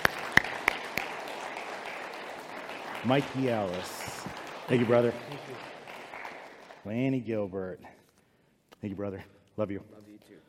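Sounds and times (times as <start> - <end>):
church congregation clapping welcoming new members: 0.0 - 7.6
speech: 3.0 - 5.8, 6.8 - 8.0, 8.8 - 10.4.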